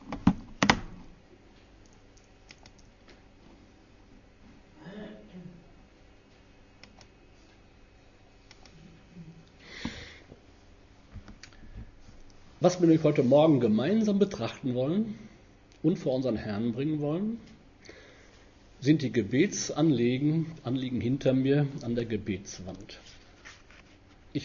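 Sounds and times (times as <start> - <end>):
quiet room noise: 0.0 - 24.4
clicks changing a presentation slide: 1.8 - 3.2, 6.8 - 7.1, 8.5 - 8.8
faint breath: 9.6 - 10.4, 17.8 - 18.6
speech: 12.6 - 17.5, 18.8 - 23.2.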